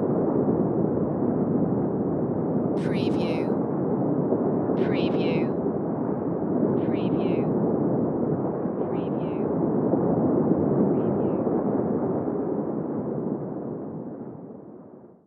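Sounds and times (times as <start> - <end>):
underwater ambience: 0.0 - 15.2.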